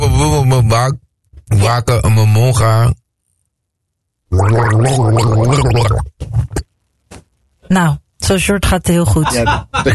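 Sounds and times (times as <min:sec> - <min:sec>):
speech: 0:00.7 - 0:03.0, 0:04.3 - 0:06.6, 0:07.7 - 0:09.9
person gargling a tune: 0:04.3 - 0:06.7
laughter: 0:09.1 - 0:09.9.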